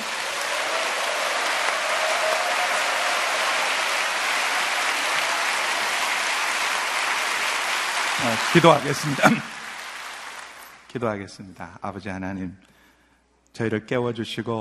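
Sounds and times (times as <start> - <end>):
crowd applauding: 0.0 - 10.9
speech: 8.2 - 9.5, 10.9 - 12.7, 13.6 - 14.5
laughter: 8.4 - 9.6.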